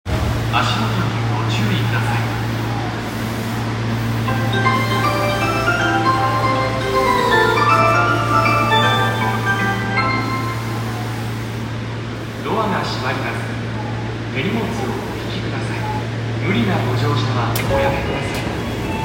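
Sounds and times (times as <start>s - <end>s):
train: 0.0s - 19.0s.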